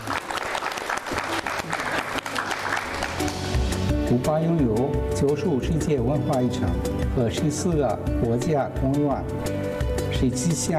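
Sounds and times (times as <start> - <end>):
audience applause: 0.0 - 3.7
speech: 4.1 - 9.6, 10.2 - 10.7.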